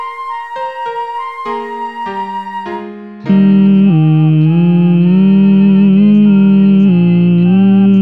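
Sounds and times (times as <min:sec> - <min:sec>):
tenor voice singing Christmas rehearsal track: 0:03.2 - 0:08.0.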